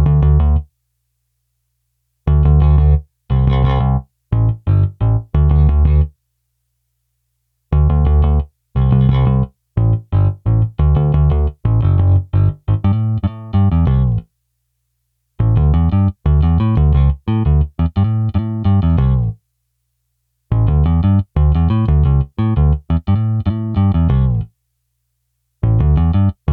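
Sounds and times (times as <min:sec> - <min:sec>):
bass: 0:00.0 - 0:00.8, 0:02.2 - 0:06.2, 0:07.7 - 0:14.4, 0:15.4 - 0:19.5, 0:20.5 - 0:24.6, 0:25.6 - 0:26.5.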